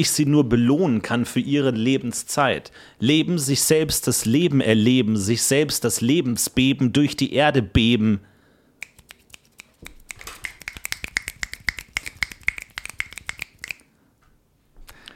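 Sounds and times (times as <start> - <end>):
speech: 0.0 - 8.3
audience finger snapping as applause: 8.8 - 13.9.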